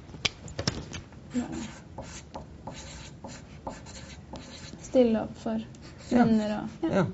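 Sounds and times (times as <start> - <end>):
speech: 1.3 - 2.1, 5.0 - 7.1
pen scratching on paper writing a note: 1.3 - 5.0, 5.8 - 6.8.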